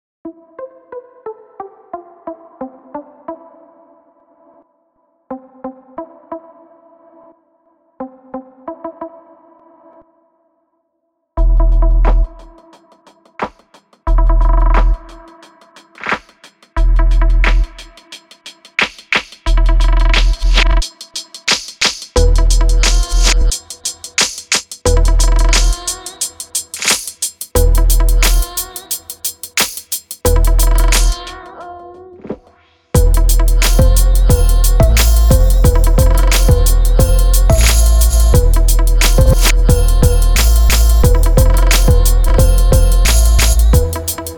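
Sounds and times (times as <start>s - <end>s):
drums: 11.4s - 31.4s, 32.2s - 44.3s.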